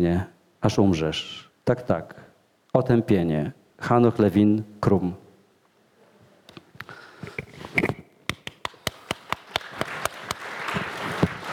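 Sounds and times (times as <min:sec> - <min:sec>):
speech: 0:00.0 - 0:02.2, 0:02.8 - 0:05.2
audience clapping: 0:08.4 - 0:11.5.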